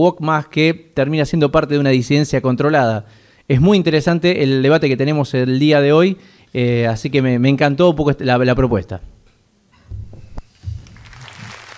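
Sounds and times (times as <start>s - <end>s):
speech: 0.0s - 9.2s
audience applause: 10.6s - 11.7s.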